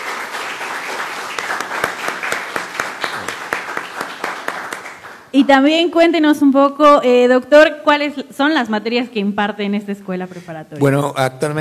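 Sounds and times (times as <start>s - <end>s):
audience applauding: 0.0s - 5.3s
speech: 5.4s - 11.5s.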